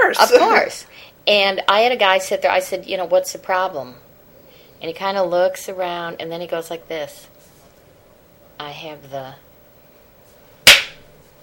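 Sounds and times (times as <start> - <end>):
speech: 0.1 - 4.0, 4.8 - 7.3, 8.6 - 9.4
single sharp hand clap: 10.7 - 11.0.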